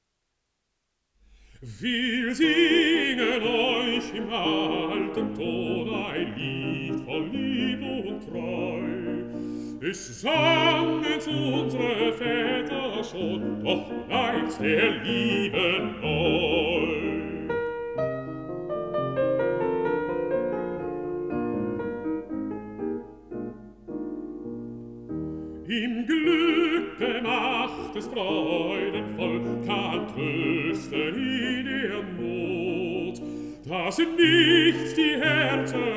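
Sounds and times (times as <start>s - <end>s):
piano: 1.2s - 35.9s
person singing: 1.6s - 17.7s, 25.6s - 35.9s.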